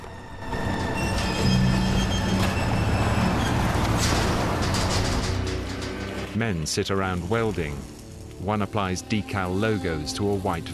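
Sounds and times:
metal roller door being raised: 0:00.1 - 0:06.5
speech: 0:06.4 - 0:10.7.

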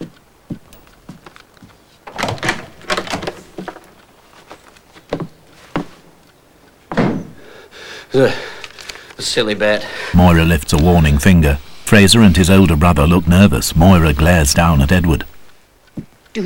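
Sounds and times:
door opening and closing: 0:02.0 - 0:05.4, 0:06.9 - 0:07.4
speech: 0:08.2 - 0:08.5, 0:09.2 - 0:15.3.

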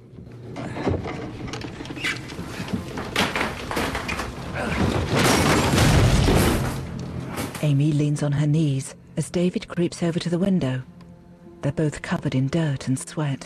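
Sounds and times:
heavy wooden counter scraping and toppling onto a hatch: 0:00.8 - 0:07.0
speech: 0:07.6 - 0:10.9, 0:11.6 - 0:13.4.

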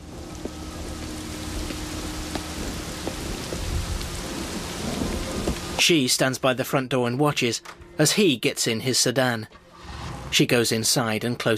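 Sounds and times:
low rumbling: 0:00.0 - 0:05.8
heavy rain pouring: 0:00.0 - 0:06.4
speech: 0:05.8 - 0:09.6, 0:10.3 - 0:11.5.

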